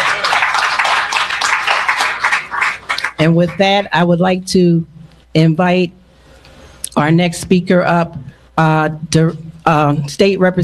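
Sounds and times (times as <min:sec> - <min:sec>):
audience clapping hands: 0:00.0 - 0:03.7
speech: 0:03.2 - 0:06.0, 0:07.0 - 0:10.6.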